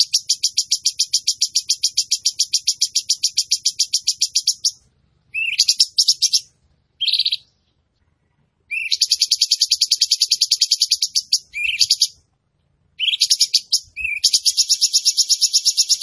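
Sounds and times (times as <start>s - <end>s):
Tembakan bird singing vigorously: 0.0s - 7.8s, 8.6s - 12.3s, 12.9s - 16.0s.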